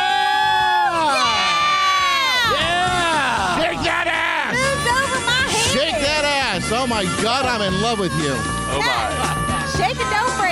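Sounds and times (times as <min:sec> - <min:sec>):
crowd cheering and shouting excitedly: 0:00.0 - 0:10.5
speech: 0:06.7 - 0:10.0.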